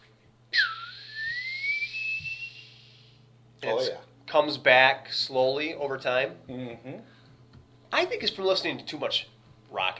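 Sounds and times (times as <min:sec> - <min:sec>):
faint low hum: 0:00.0 - 0:09.9
high whistled tone imitating ear ringing after sudden deafness: 0:00.5 - 0:03.2
speech: 0:03.6 - 0:07.1, 0:07.9 - 0:09.9.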